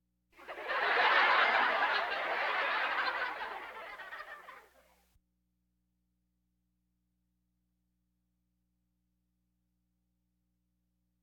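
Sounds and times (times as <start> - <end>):
audience laughter: 0.4 - 4.8.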